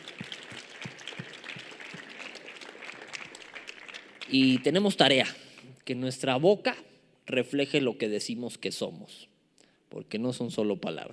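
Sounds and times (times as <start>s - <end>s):
audience applause: 0.0s - 5.2s
speech: 4.3s - 9.3s, 9.9s - 11.1s.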